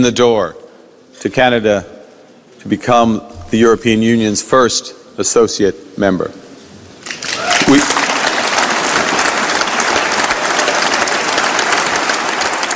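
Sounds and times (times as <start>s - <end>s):
speech: 0.0s - 0.6s, 1.2s - 1.9s, 2.6s - 6.4s, 7.7s - 8.0s
applause in a parliament chamber in Strasbourg, France: 7.0s - 12.7s.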